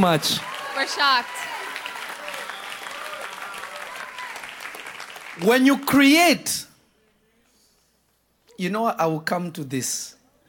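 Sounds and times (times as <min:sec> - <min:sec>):
speech: 0:00.0 - 0:01.6, 0:05.4 - 0:06.7, 0:08.6 - 0:10.2
audience clapping: 0:00.0 - 0:06.1.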